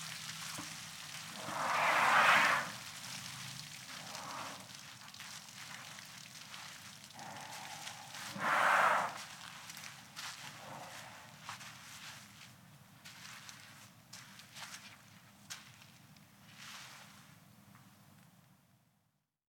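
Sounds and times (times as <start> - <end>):
elephant snorting: 1.3 - 2.9, 3.9 - 4.7, 7.2 - 9.4, 10.4 - 11.4.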